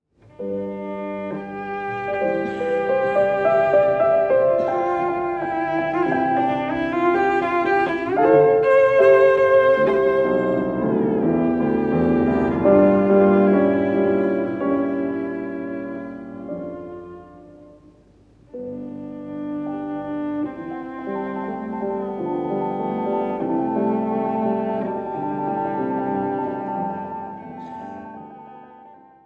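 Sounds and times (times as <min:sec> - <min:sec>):
cello sonata in C major: 0:00.1 - 0:29.2.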